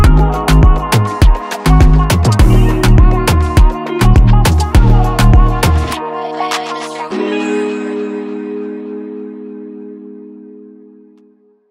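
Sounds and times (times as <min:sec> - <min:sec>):
afrobeat and dancehall style beat: 0:00.0 - 0:07.4.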